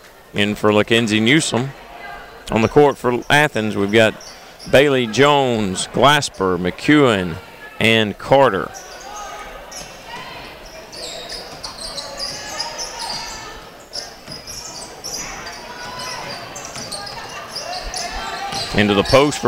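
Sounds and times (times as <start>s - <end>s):
crowd noise: 0.0s - 19.4s
speech: 0.3s - 1.8s, 2.5s - 8.9s, 18.8s - 19.4s
play-by-play commentary: 2.5s - 8.7s, 18.6s - 19.4s
basketball dribbled on a court: 14.2s - 19.2s.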